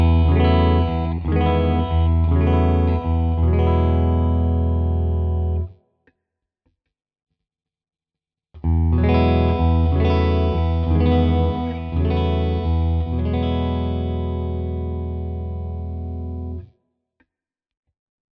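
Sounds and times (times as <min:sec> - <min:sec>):
Hagstroem guitar clean chords in all positions: 0:00.0 - 0:05.7, 0:08.6 - 0:16.7.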